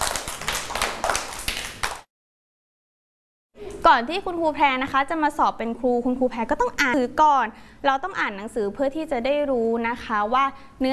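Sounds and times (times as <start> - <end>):
children clapping hands: 0.0 - 2.1
speech: 3.8 - 10.9.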